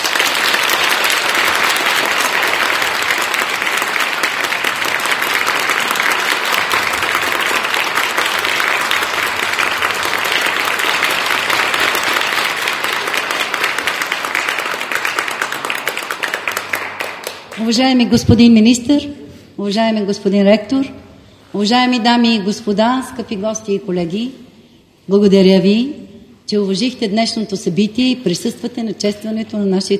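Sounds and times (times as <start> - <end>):
audience applause: 0.0 - 17.7
speech: 17.7 - 24.4, 25.1 - 29.9.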